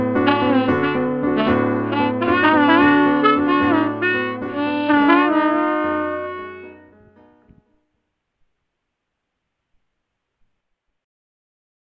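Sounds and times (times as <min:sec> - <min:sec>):
piano in 15-EDO tuning: 0:00.0 - 0:08.2.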